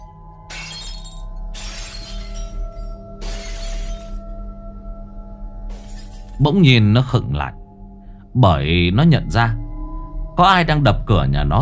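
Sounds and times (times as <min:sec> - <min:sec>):
earthenware bowls smashing: 0:00.0 - 0:04.2, 0:05.7 - 0:06.4
speech: 0:06.4 - 0:07.6, 0:08.4 - 0:09.6, 0:10.4 - 0:11.6.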